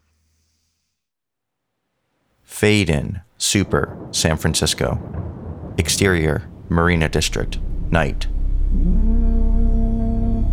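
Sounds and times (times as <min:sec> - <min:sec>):
speech: 0:02.6 - 0:09.0
foghorn moaning in the distance: 0:07.2 - 0:10.5.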